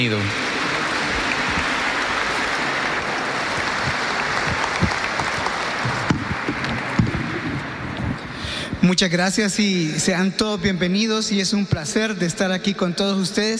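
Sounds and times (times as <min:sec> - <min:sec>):
speech: 0:00.0 - 0:00.4, 0:08.8 - 0:13.5
audience applause: 0:00.0 - 0:08.4.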